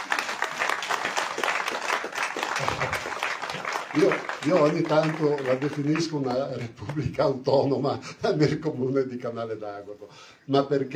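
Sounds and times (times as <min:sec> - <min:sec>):
audience applause: 0:00.0 - 0:07.1
speech: 0:04.0 - 0:10.9.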